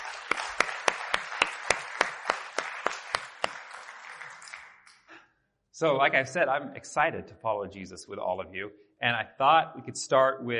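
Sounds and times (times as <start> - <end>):
audience applause: 0.0 - 4.9
sharp evenly spaced claps: 0.0 - 5.2
speech: 5.8 - 10.5.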